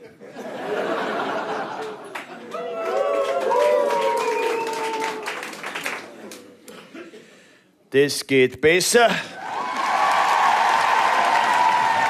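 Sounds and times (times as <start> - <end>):
laughter: 0.0 - 3.0
audience cheering: 2.3 - 6.0, 9.4 - 12.0
speech: 7.9 - 9.3.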